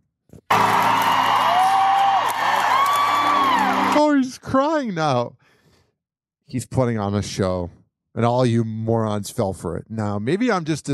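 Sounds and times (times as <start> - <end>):
concert crowd cheering: 0.5 - 4.3
speech: 3.9 - 5.5, 6.5 - 10.9.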